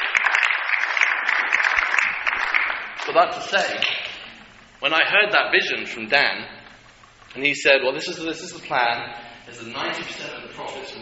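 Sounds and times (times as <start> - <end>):
crowd applauding: 0.0 - 4.1
speech: 3.1 - 4.0, 4.8 - 6.6, 7.3 - 10.9.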